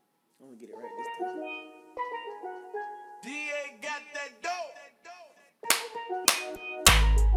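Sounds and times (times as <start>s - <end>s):
speech: 0.4s - 3.4s
clap hits: 5.7s - 7.2s.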